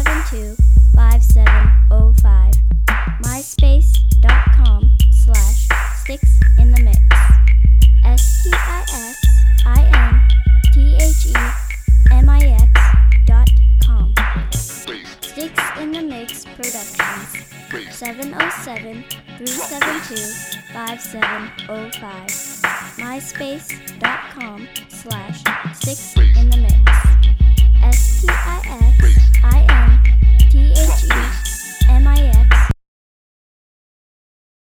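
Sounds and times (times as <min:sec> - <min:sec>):
bass drop: 0:00.0 - 0:14.8, 0:26.2 - 0:32.8.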